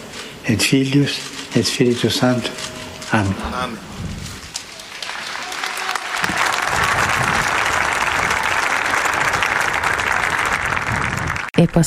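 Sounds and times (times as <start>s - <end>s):
speech: 0.5s - 4.2s, 11.6s - 11.8s
audience applause: 4.4s - 11.6s.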